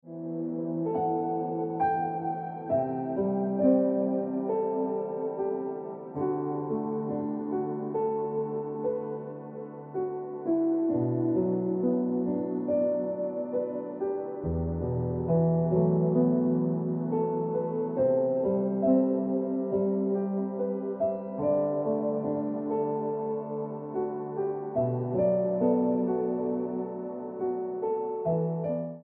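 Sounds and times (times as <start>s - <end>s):
piano music: 0.0s - 29.0s.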